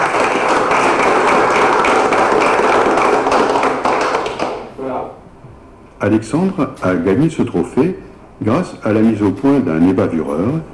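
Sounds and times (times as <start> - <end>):
audience applause: 0.0 - 4.7
speech: 6.0 - 10.7.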